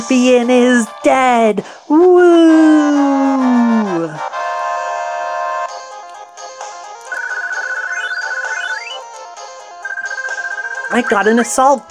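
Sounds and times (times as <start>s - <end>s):
speech: 0.0s - 4.3s, 10.9s - 11.9s
alarm ringing: 7.1s - 9.1s, 9.8s - 11.6s.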